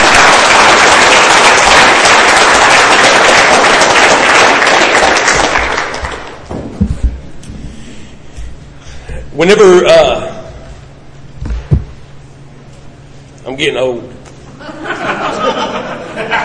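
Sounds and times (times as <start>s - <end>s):
audience applause: 0.0s - 6.5s
speech: 9.4s - 10.2s, 13.6s - 14.1s
laughter: 14.5s - 16.4s.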